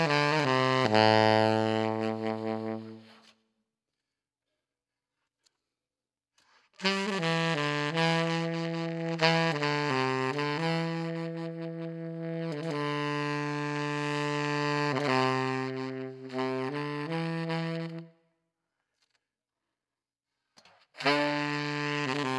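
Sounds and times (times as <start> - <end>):
saxophone: 0.0 - 3.4, 6.8 - 18.4, 20.9 - 22.3.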